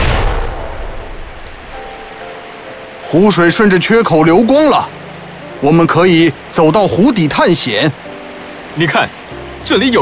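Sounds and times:
explosives detonating in a cave: 0.0s - 1.5s
speech: 3.1s - 5.0s, 5.6s - 8.0s, 8.8s - 9.9s.

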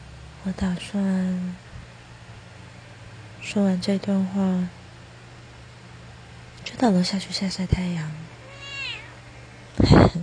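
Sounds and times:
speech: 0.4s - 1.6s, 3.4s - 4.8s, 6.8s - 8.2s
cat meowing: 8.4s - 9.2s.

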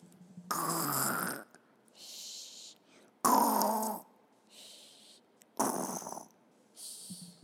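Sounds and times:
sleeping piglet snoring: 0.5s - 2.4s, 3.2s - 4.0s, 5.6s - 6.3s.

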